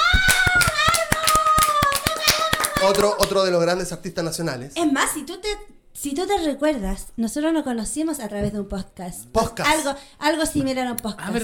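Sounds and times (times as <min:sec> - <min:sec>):
audience clapping: 0:00.0 - 0:03.5
speech: 0:02.8 - 0:11.4.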